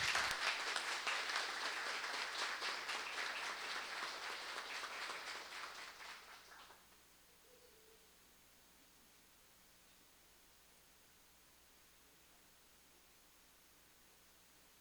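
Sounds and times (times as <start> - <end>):
audience applause: 0.0 - 6.8.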